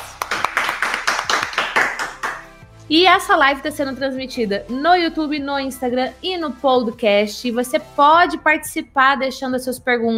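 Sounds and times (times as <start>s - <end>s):
applause: 0.0s - 2.6s
speech: 2.9s - 10.1s.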